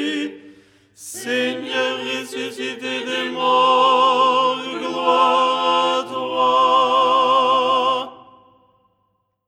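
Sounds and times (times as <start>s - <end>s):
tenor singing: 1.0s - 8.2s.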